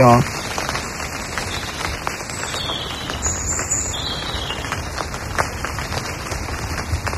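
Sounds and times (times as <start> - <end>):
high bird calls: 0.0 - 5.0
rain falling on leaves in a forest: 0.0 - 7.1.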